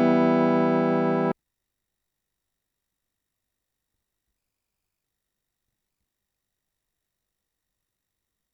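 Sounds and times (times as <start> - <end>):
MIDI music: 0.0 - 1.3.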